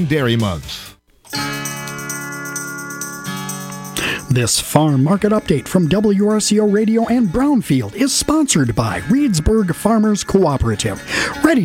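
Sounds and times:
speech: 0.0s - 0.9s, 4.3s - 11.6s
ringing bell jingle: 1.3s - 6.5s.

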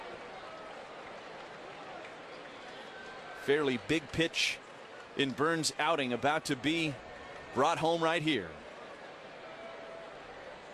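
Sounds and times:
baseball stadium crowd clapping at Oriole Park: 0.0s - 8.3s
speech: 3.4s - 4.6s, 5.2s - 8.6s.

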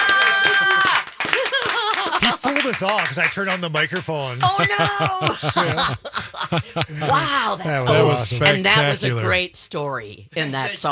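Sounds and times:
clapping after a song: 0.0s - 4.7s
laughter: 0.0s - 9.1s
speech: 2.7s - 10.9s.

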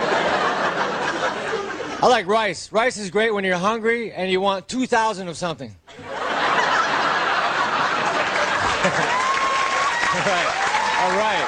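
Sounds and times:
laughter: 0.0s - 2.2s, 5.9s - 11.4s
speech: 2.0s - 6.1s
audience applause: 6.7s - 11.4s.

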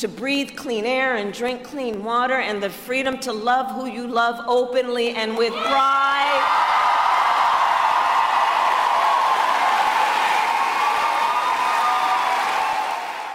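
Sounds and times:
speech: 0.0s - 6.8s
crowd cheering at a political rally: 5.5s - 13.3s.

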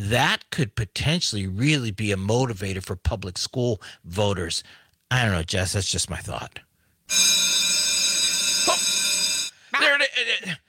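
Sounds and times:
speech: 0.0s - 7.5s, 9.8s - 10.6s
bell ringing: 7.1s - 9.7s.

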